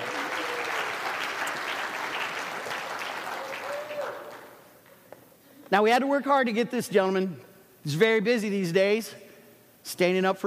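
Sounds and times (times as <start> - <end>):
audience applause: 0.0 - 4.6
speech: 5.7 - 9.2, 9.8 - 10.4.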